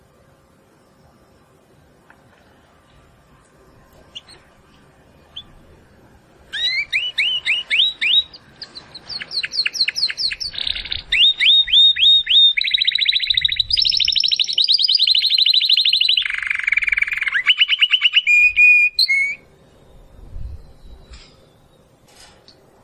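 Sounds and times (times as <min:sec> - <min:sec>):
domestic canary singing: 0:03.8 - 0:05.8, 0:06.4 - 0:22.0.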